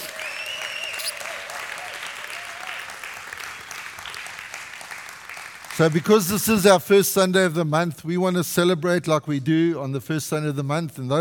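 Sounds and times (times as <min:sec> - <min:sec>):
whoops and raised voices: 0:00.0 - 0:02.8
audience applause: 0:00.0 - 0:06.6
speech: 0:05.8 - 0:11.2.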